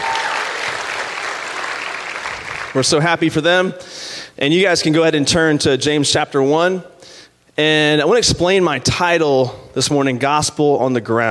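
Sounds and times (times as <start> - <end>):
audience clapping: 0.0 - 2.8
speech: 2.8 - 6.9, 7.6 - 11.2.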